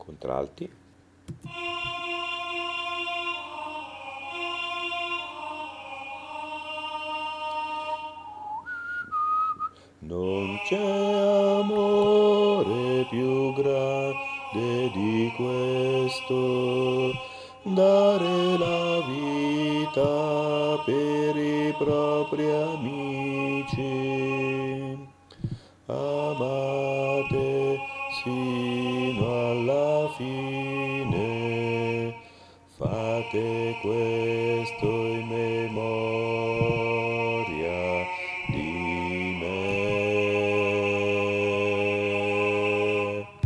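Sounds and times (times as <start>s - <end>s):
contralto voices singing: 1.3s - 9.2s, 10.0s - 43.4s.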